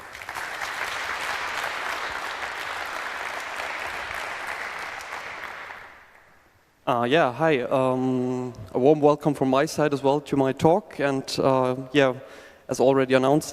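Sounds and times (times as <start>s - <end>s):
audience applause welcoming a speaker to the stage: 0.0s - 6.3s
speech: 6.9s - 13.5s.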